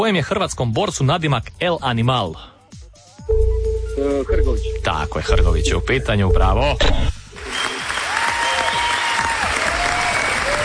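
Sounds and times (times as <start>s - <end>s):
speech: 0.0s - 2.5s, 4.0s - 7.2s
studio technical crew applauding: 7.4s - 10.6s.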